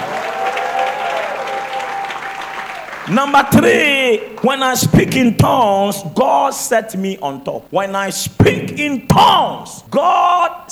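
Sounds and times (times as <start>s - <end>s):
audience shouting: 0.0s - 4.3s
speech: 3.1s - 10.7s.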